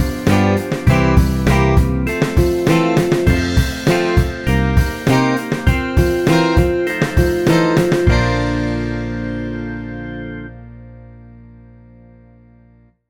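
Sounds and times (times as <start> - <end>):
fast instrumental run in B flat: 0.0 - 10.0.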